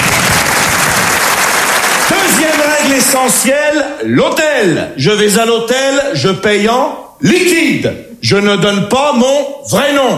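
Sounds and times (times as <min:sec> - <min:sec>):
crowd applause: 0:00.0 - 0:03.1
speech: 0:02.2 - 0:10.1.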